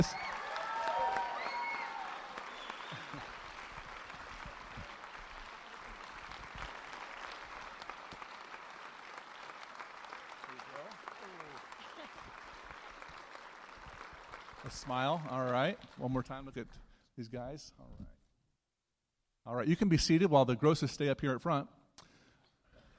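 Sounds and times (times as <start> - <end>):
audience clapping: 0.0 - 16.8
speech: 14.7 - 17.8, 19.5 - 21.8.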